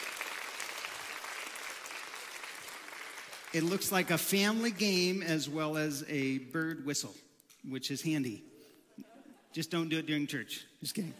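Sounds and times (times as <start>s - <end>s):
audience clapping: 0.0s - 5.2s
speech: 3.5s - 11.1s.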